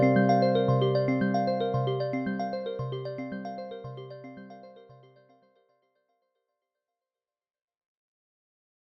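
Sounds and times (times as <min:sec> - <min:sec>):
evolving mallet tone: 0:00.0 - 0:03.6.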